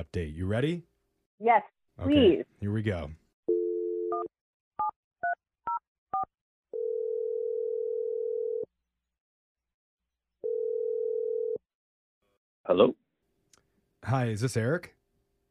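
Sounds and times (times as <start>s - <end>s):
speech: 0.0s - 3.2s, 12.7s - 13.0s, 14.0s - 15.0s
steady telephone dial tone: 3.5s - 4.3s, 6.7s - 8.7s, 10.4s - 11.6s.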